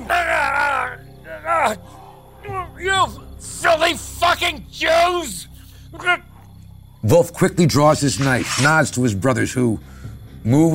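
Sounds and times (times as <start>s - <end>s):
man groaning in pain: 0.0s - 1.8s
speech: 1.6s - 6.2s, 7.0s - 10.7s.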